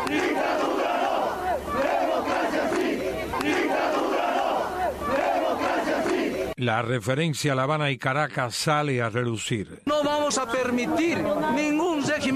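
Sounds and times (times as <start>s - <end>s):
protest crowd chanting slogans in unison: 0.0s - 6.6s
speech: 6.6s - 12.3s.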